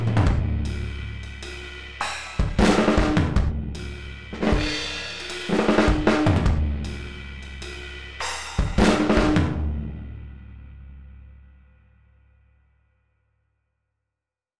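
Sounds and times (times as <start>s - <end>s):
mono garage rock drums: 0.0s - 11.6s.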